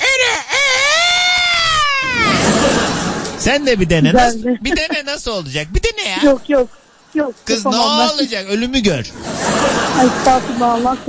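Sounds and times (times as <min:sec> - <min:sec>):
person imitating a rooster crowing: 0:00.0 - 0:02.4
laughter: 0:01.6 - 0:06.5, 0:07.6 - 0:11.0
speech: 0:03.4 - 0:09.4, 0:10.0 - 0:11.0.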